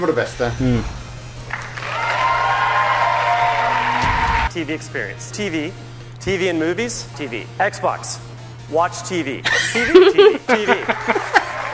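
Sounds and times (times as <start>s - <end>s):
speech: 0.0s - 1.0s, 4.5s - 11.2s
audience applause at console reveal event: 1.5s - 4.5s, 10.8s - 11.7s
laughter: 9.4s - 11.7s.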